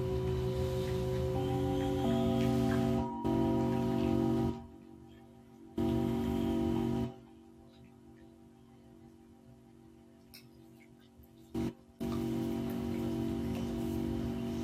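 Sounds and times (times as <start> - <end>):
singing bowls ringing in sound healing: 0.0 - 7.0
low hum: 0.0 - 14.6.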